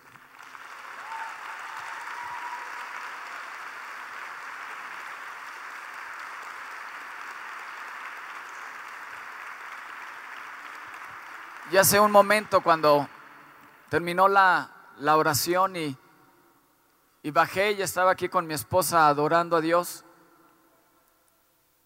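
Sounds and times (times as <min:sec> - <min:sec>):
audience applause: 0:00.0 - 0:13.6
speech: 0:11.7 - 0:13.1, 0:13.9 - 0:16.0, 0:17.2 - 0:20.1.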